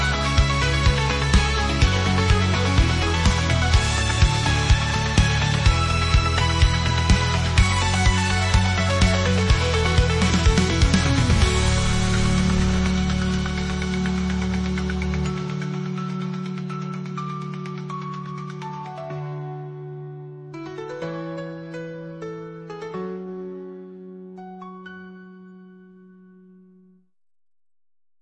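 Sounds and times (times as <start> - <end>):
pop rock music: 0.0 - 19.2.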